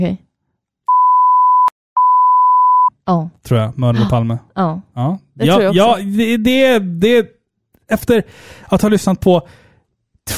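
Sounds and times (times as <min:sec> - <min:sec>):
speech: 0:00.0 - 0:00.2, 0:03.1 - 0:09.6
censor bleep covering a spoken name: 0:00.9 - 0:03.0.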